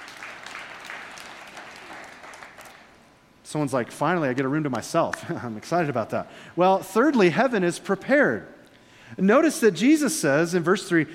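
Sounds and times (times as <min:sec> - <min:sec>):
audience clapping: 0:00.0 - 0:03.0
speech: 0:03.5 - 0:11.1.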